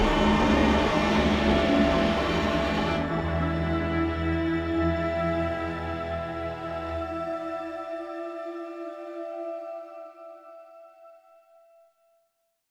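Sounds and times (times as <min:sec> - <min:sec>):
tense music: 0:00.0 - 0:10.0.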